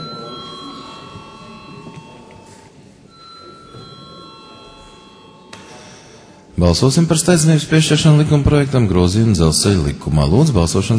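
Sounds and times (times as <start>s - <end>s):
electronic bell ringing in a parliament chamber to call a vote: 0.0s - 6.8s
murmur of voices in a parliament chamber: 0.0s - 10.9s
speech: 6.6s - 10.9s.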